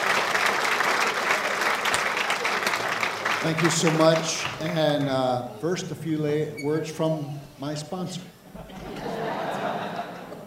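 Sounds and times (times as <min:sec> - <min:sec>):
audience applauding to welcome a missionary speaker at Fountain of Life: 0:00.0 - 0:05.5
speech: 0:03.4 - 0:08.4
laughter: 0:08.5 - 0:10.4.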